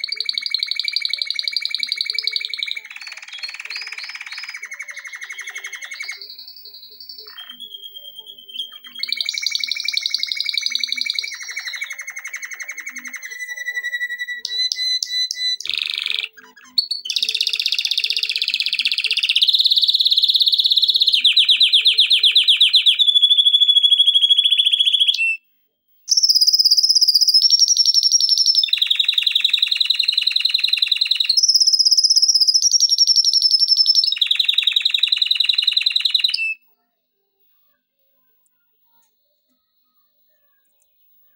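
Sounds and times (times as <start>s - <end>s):
canary song: 0.0s - 25.4s, 26.1s - 36.9s.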